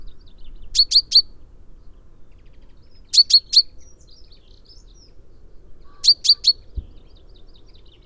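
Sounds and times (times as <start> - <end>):
common chaffinch Fringilla coelebs calling with sharp high notes: 0.8 - 1.3, 5.9 - 6.6.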